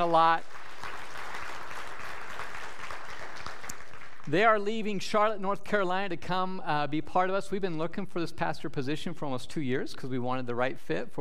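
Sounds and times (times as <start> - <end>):
speech: 0.0 - 0.5, 4.2 - 11.1
audience applauding: 0.0 - 4.4.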